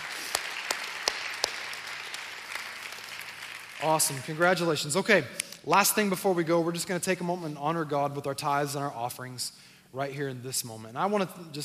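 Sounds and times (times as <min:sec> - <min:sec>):
church congregation applause welcoming people into God's family: 0:00.0 - 0:05.0
speech: 0:03.8 - 0:11.6.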